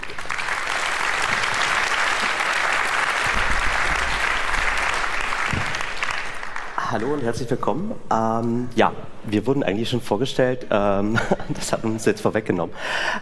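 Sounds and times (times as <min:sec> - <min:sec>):
audience applause: 0:00.0 - 0:07.2
speech: 0:07.0 - 0:13.2.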